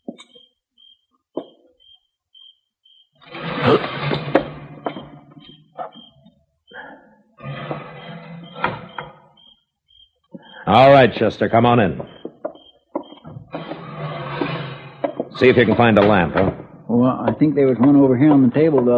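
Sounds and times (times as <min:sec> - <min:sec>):
high pulsing chirp: 0:00.0 - 0:03.2, 0:04.8 - 0:07.3, 0:07.9 - 0:13.5
screen door jerked open: 0:03.2 - 0:05.9, 0:07.4 - 0:09.4, 0:13.3 - 0:16.7
speech: 0:10.8 - 0:12.1, 0:15.4 - 0:18.9.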